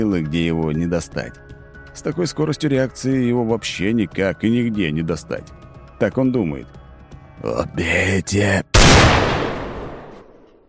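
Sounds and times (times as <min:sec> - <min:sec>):
speech: 0:00.0 - 0:06.8, 0:07.4 - 0:08.7
single loud gunshot from a Desert Eagle pistol: 0:08.8 - 0:10.5.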